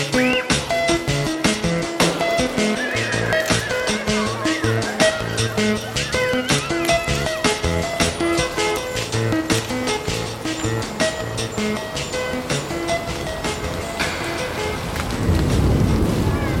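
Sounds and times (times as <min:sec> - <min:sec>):
organic ambient textures: 0:00.0 - 0:16.5
laughter: 0:02.5 - 0:07.7.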